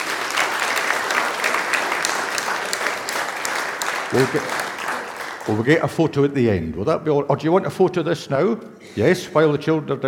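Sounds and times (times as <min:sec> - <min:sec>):
applause: 0:00.0 - 0:06.0
speech: 0:04.1 - 0:04.6, 0:05.5 - 0:10.0.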